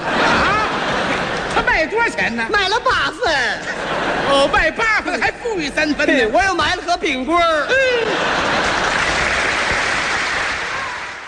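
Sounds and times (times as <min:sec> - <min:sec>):
laughter: 0:00.0 - 0:01.9, 0:03.3 - 0:06.2, 0:07.6 - 0:09.8
speech: 0:02.1 - 0:08.8
audience applause at a Chinese crosstalk comedy performance: 0:08.2 - 0:11.2.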